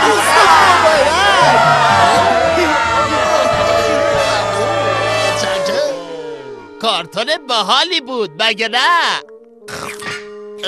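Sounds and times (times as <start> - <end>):
crowd applauding: 0.0 - 6.5
speech: 7.2 - 9.9.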